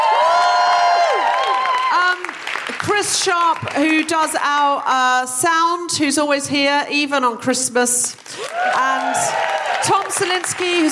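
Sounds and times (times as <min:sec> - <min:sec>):
whoops and shouts: 0:00.0 - 0:02.2, 0:08.4 - 0:10.2
crowd cheering: 0:00.0 - 0:02.9, 0:08.3 - 0:10.9
audience clapping: 0:00.0 - 0:04.9, 0:08.2 - 0:10.9
speech: 0:02.8 - 0:10.9.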